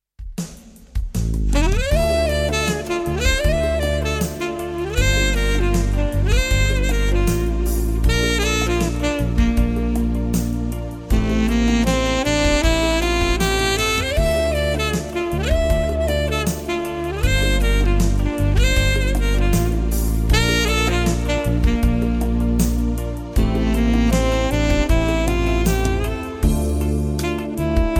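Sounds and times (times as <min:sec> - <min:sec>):
instrumental cover music: 0:00.2 - 0:27.9.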